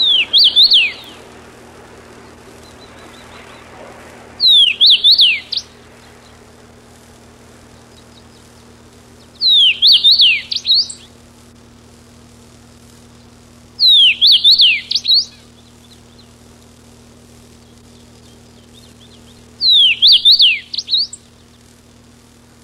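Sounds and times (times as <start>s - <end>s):
Carpodacus erythrinus: 0.0s - 11.2s, 13.8s - 16.4s, 17.6s - 21.5s.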